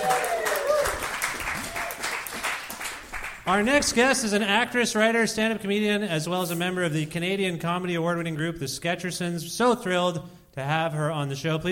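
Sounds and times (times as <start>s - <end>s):
audience applause: 0.0s - 3.5s
speech: 3.5s - 11.7s.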